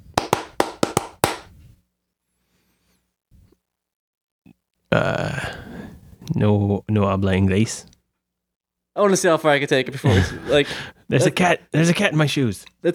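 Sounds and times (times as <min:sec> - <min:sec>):
hand clapping: 0:00.2 - 0:01.5
speech: 0:06.4 - 0:07.9, 0:09.0 - 0:12.9.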